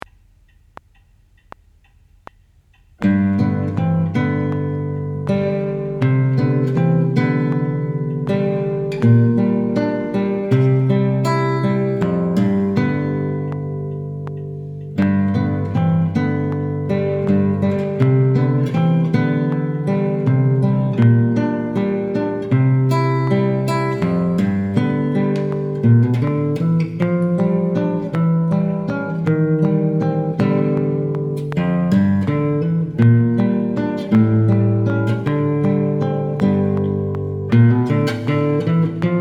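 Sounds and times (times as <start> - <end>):
blues guitar: 3.0 - 39.1.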